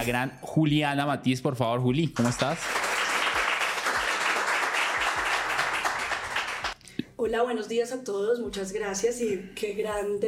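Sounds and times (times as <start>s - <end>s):
speech: 0.0s - 2.9s, 7.2s - 10.2s
audience applause: 2.2s - 6.8s.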